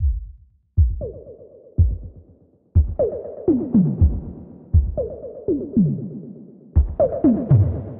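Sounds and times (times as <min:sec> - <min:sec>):
drum loop: 0:00.0 - 0:02.2, 0:02.8 - 0:05.2, 0:06.8 - 0:07.8.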